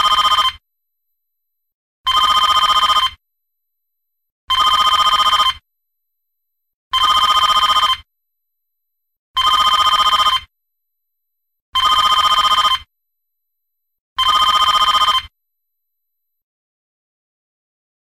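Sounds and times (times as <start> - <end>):
3D phone ringtone: 0.0 - 0.6, 2.1 - 3.2, 4.5 - 5.6, 7.0 - 8.1, 9.4 - 10.5, 11.8 - 12.9, 14.2 - 15.4.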